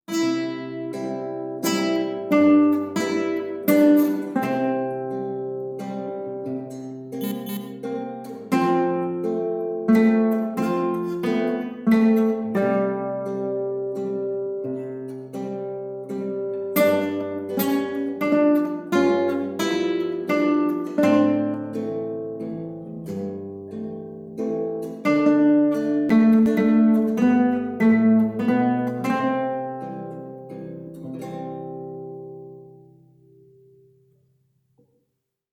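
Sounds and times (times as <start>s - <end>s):
guitar: 0.0s - 35.2s.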